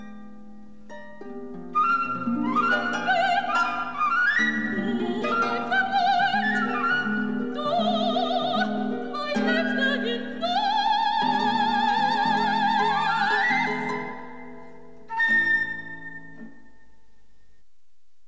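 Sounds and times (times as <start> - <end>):
harp: 0.0 - 17.6
flute: 1.7 - 8.4, 11.8 - 14.4, 15.1 - 17.0
mezzo-soprano singing: 2.2 - 14.5.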